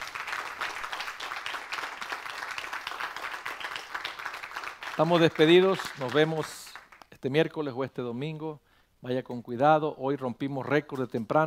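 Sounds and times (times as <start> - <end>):
audience applauding: 0.0 - 7.1
speech: 5.0 - 6.6, 7.2 - 11.4.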